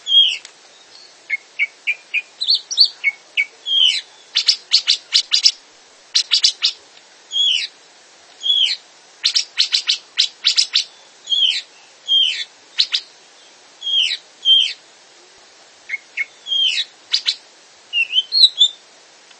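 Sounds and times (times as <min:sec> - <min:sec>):
Grey-cheeked bulbul song: 0:00.0 - 0:07.7, 0:08.4 - 0:13.1, 0:15.9 - 0:18.8.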